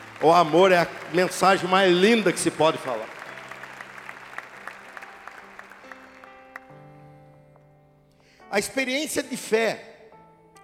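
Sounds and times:
audience applause: 0.0s - 6.8s
speech: 0.2s - 3.2s, 8.5s - 9.9s.

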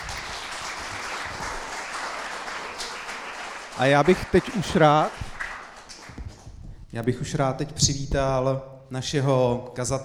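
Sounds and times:
audience applause: 0.0s - 6.5s
speech: 3.8s - 5.2s, 6.9s - 10.0s.

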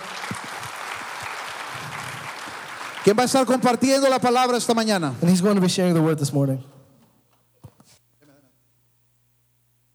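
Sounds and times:
audience applause: 0.0s - 3.8s
speech: 3.0s - 6.7s.

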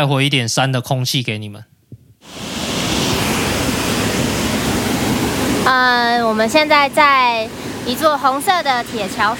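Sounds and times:
speech: 0.0s - 1.8s, 5.7s - 9.3s
rushing mountain creek water: 2.2s - 9.3s.

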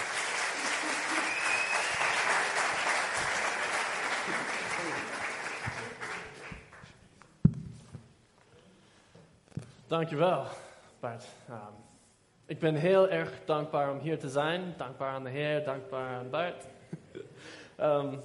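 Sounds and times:
audience applause: 0.0s - 6.9s
laughter: 0.4s - 1.8s, 4.1s - 6.1s
speech: 9.9s - 11.9s, 12.5s - 16.8s, 17.8s - 18.2s.

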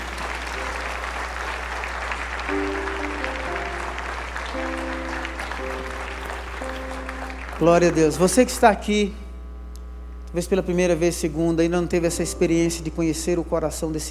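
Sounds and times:
audience clapping hands: 0.0s - 9.0s
speech: 7.6s - 9.2s, 10.3s - 14.1s.

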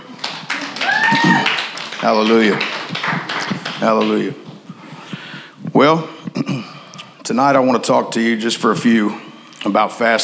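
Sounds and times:
audience hand clapping: 0.0s - 5.4s
high whoop: 0.6s - 1.7s
speech: 1.1s - 4.4s, 5.8s - 6.7s, 7.3s - 10.2s.

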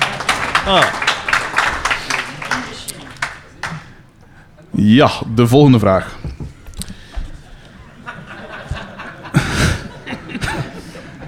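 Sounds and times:
applause: 0.0s - 3.9s
laughter: 0.0s - 5.3s, 5.9s - 11.2s
speech: 0.7s - 1.1s, 4.8s - 6.2s.

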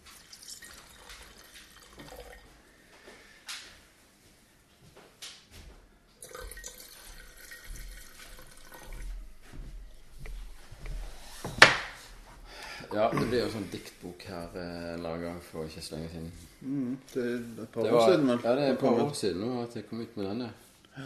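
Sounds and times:
drink pouring into a glass: 0.0s - 2.6s, 6.2s - 9.2s
speech: 13.0s - 21.0s.

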